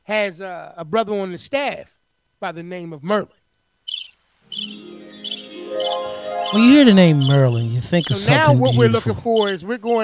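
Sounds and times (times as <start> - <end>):
speech: 0.1 - 3.4, 5.8 - 10.0
birds chirping: 3.9 - 9.6.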